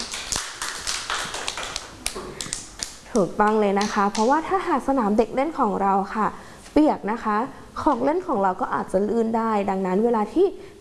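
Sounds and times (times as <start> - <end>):
children clapping hands: 0.0 - 4.3
speech: 3.2 - 10.7.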